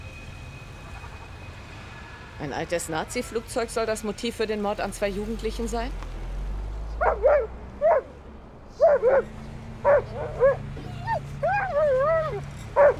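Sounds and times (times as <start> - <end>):
speech: 2.4 - 6.1
dog barking an alert: 7.0 - 8.1, 8.8 - 10.6, 12.8 - 12.9
dog whining yelps: 7.0 - 8.1, 8.8 - 12.9.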